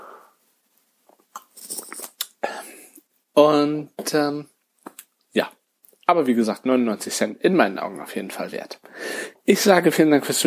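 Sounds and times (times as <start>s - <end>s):
person sipping a drink: 1.1s - 2.9s
speech: 3.4s - 4.5s, 5.3s - 10.4s.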